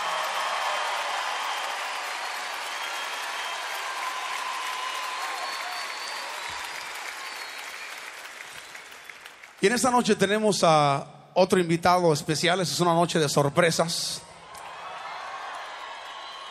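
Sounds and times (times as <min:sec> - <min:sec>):
audience applause for the orchestra: 0:00.0 - 0:09.9, 0:14.5 - 0:16.4
speech: 0:09.6 - 0:14.3.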